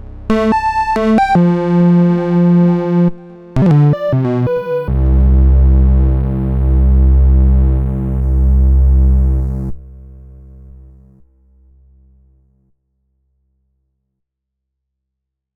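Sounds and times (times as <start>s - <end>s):
ARP 2600 V synthesizer: 0.3s - 9.8s.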